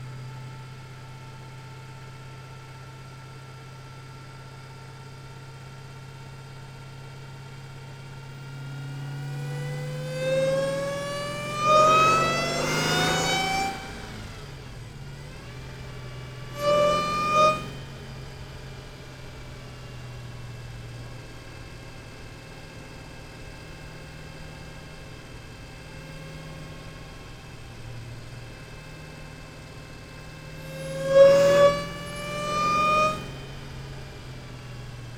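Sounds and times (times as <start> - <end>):
2015 Dodge Challenger Hellcat engine during medium drive: 9.0 - 18.9, 23.6 - 35.1.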